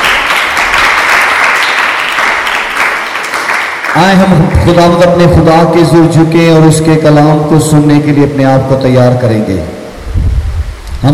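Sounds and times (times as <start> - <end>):
audience applauding: 0.0 - 4.8
speech: 4.0 - 9.8.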